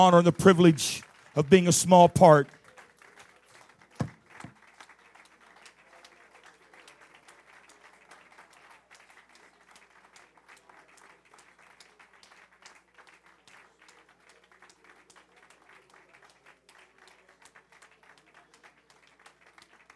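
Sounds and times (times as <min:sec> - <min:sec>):
speech: 0:00.0 - 0:02.6
audience clapping hands: 0:00.0 - 0:19.9.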